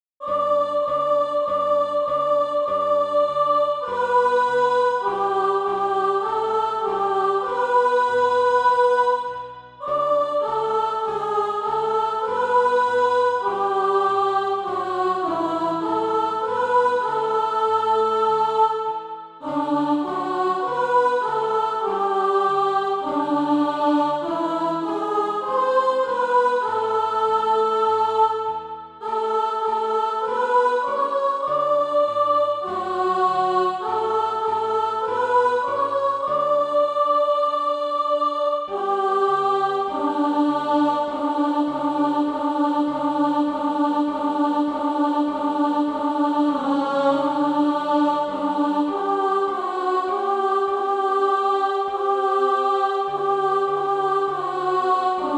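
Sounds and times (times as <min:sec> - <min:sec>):
alto voice singing: 0:00.2 - 0:55.3.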